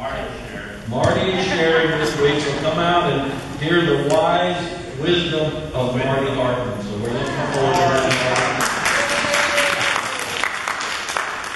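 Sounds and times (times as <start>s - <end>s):
speech: 0.9s - 8.6s
audience clapping at a morning gathering: 7.2s - 11.5s.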